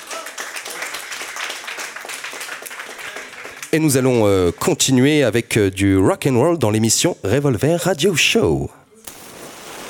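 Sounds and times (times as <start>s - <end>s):
audience applause: 0.0s - 4.7s
speech: 3.7s - 8.8s.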